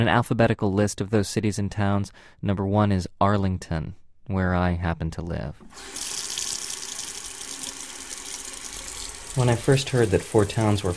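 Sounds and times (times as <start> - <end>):
speech: 0.0 - 6.2, 9.4 - 10.9
water running from a faucet: 5.7 - 10.9.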